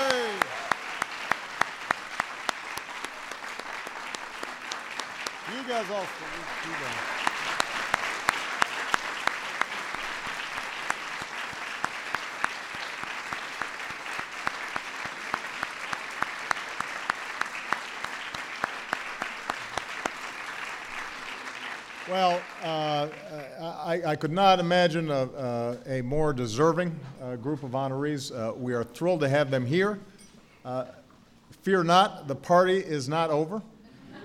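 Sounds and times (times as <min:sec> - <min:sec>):
audience applause: 0:00.0 - 0:23.7
speech: 0:05.7 - 0:07.3, 0:24.0 - 0:31.0, 0:31.6 - 0:33.7.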